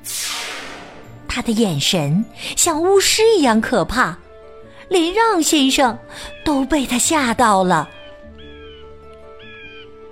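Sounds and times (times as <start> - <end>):
speech: 1.3 - 4.2, 4.9 - 8.0
crow cawing: 8.0 - 9.9.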